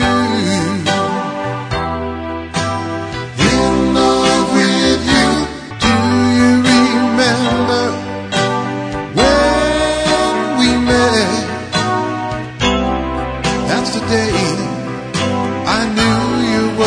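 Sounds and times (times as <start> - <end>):
slow oldies music played by a one man band: 0.0 - 16.8.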